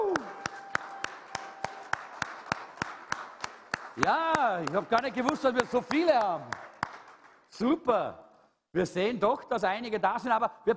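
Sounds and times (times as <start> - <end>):
audience clapping in unison: 0.0 - 7.6
speech: 4.0 - 6.6, 7.5 - 10.7.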